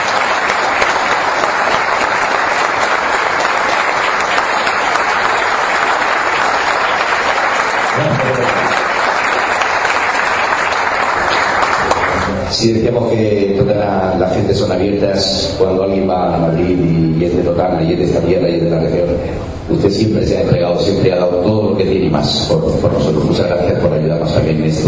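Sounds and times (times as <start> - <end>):
audience applause: 0.0 - 12.5
speech: 12.6 - 24.8.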